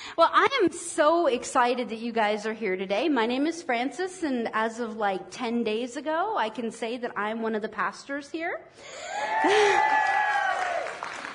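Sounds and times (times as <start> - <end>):
speech: 0.1 - 10.2
audience applause: 9.2 - 11.3.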